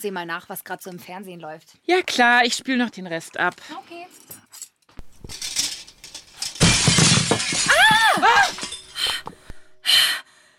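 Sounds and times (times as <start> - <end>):
speech: 0.0 - 4.6
stone thrown through window glass shattering: 5.2 - 9.0.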